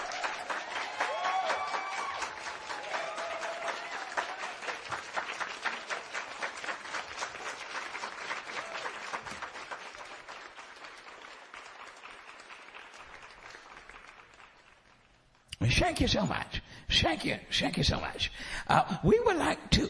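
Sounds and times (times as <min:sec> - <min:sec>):
audience clapping for a performer: 0:00.0 - 0:15.7
speech: 0:15.8 - 0:19.8.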